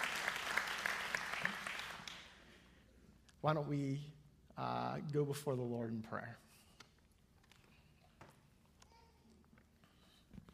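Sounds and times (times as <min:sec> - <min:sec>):
audience round of applause: 0:00.0 - 0:02.3
speech: 0:03.4 - 0:06.5.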